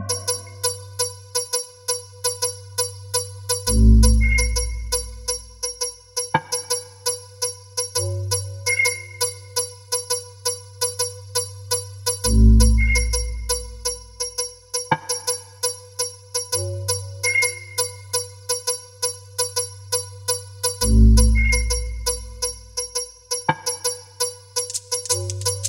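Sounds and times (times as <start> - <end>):
bells: 0.1 - 25.6
whistles: 3.6 - 5.5, 8.7 - 10.2, 12.2 - 15.0, 17.2 - 18.4, 21.2 - 22.9.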